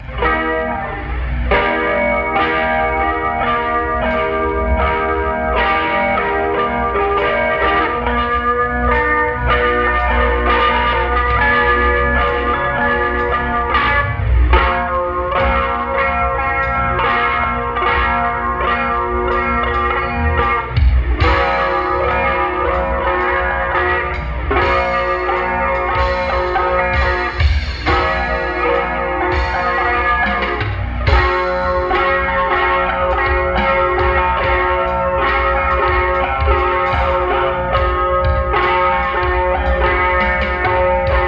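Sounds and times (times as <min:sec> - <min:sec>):
guitar: 0:00.0 - 0:41.2.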